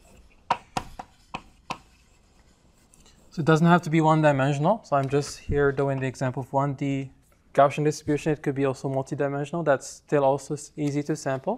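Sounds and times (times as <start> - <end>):
writing tool tapping a surface during lecture handwriting: 0.4 - 2.1
speech: 3.4 - 11.5.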